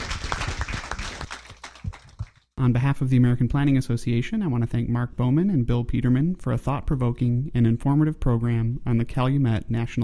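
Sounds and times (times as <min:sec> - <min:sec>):
audience applause: 0:00.0 - 0:02.4
speech: 0:02.6 - 0:10.0.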